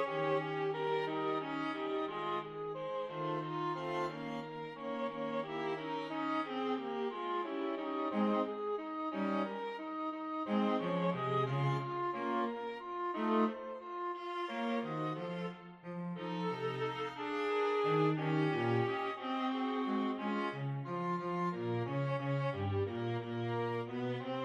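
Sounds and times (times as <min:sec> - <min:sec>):
string quartet playing a minuet: 0:00.0 - 0:24.4.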